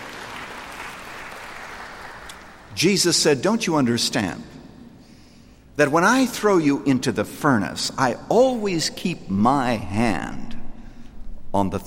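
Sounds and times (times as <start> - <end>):
audience clapping in agreement during a sermon: 0.0 - 2.7
speech: 2.8 - 4.6, 5.8 - 10.6, 11.5 - 11.8.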